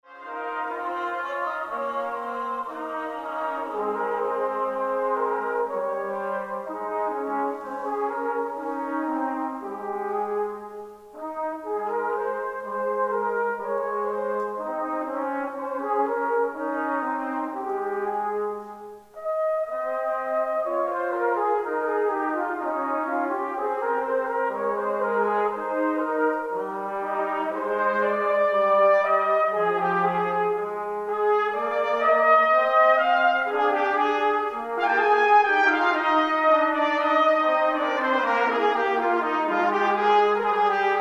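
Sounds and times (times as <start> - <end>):
trumpet ensemble playing: 0.1 - 41.0.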